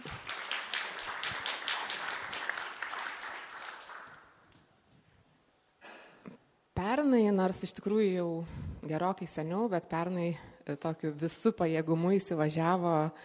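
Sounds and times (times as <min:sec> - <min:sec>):
audience applause for panel guests being introduced: 0:00.0 - 0:04.3
speech: 0:06.8 - 0:13.2.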